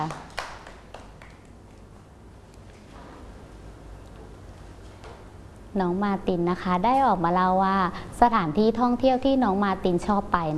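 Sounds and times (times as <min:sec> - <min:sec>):
children clapping: 0:00.0 - 0:01.6
steady room hum: 0:00.0 - 0:10.5
speech: 0:05.8 - 0:10.5.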